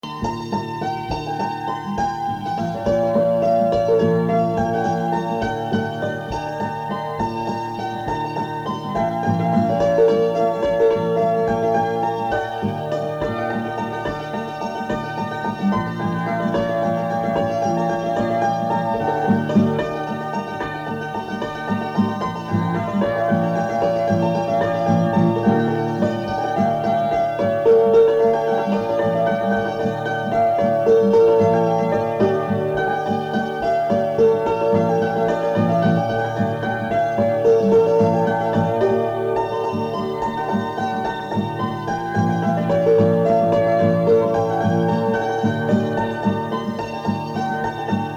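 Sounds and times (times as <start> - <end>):
waltz music: 0.0 - 48.1.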